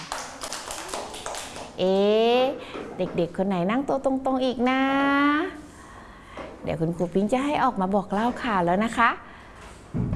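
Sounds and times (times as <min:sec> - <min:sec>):
children clapping in a classroom: 0:00.0 - 0:01.8
speech: 0:01.8 - 0:05.6, 0:06.6 - 0:09.2.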